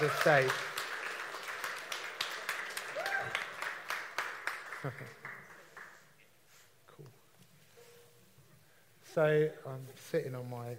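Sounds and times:
speech: 0:00.0 - 0:00.7, 0:04.8 - 0:05.1, 0:09.2 - 0:10.7
audience applause: 0:00.0 - 0:06.2.

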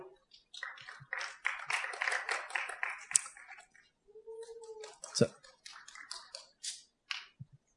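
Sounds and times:
group clapping: 0:00.4 - 0:03.8, 0:04.6 - 0:07.4
speech: 0:05.2 - 0:05.4.

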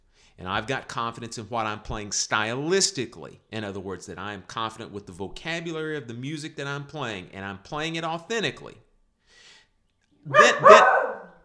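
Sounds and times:
speech: 0:00.4 - 0:08.8, 0:10.2 - 0:11.0
schnauzer barking: 0:10.3 - 0:11.4.

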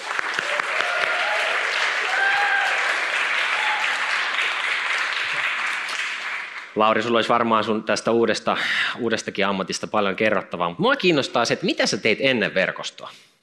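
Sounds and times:
audience applause: 0:00.0 - 0:06.8
speech: 0:06.8 - 0:13.3.

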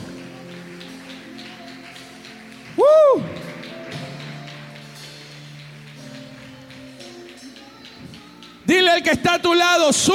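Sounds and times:
audience applause: 0:00.0 - 0:06.5
speech: 0:09.0 - 0:10.1.

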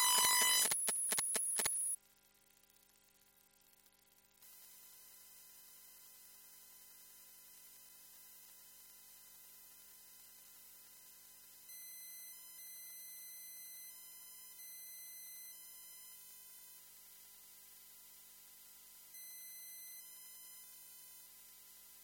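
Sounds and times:
electromagnetic hum from a washing machine programmer: 0:00.0 - 0:02.0.

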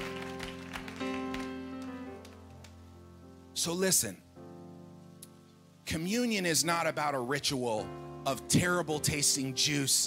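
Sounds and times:
audience clapping: 0:00.0 - 0:02.8
speech: 0:03.6 - 0:04.3, 0:05.9 - 0:10.0.

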